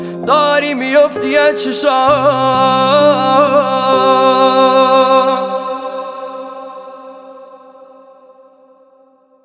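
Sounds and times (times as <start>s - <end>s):
piano music: 0.0s - 6.6s.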